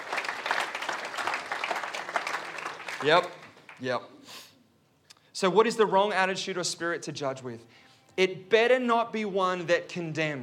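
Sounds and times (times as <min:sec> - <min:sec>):
applause: 0:00.0 - 0:04.0
speech: 0:03.0 - 0:04.4, 0:05.4 - 0:10.4.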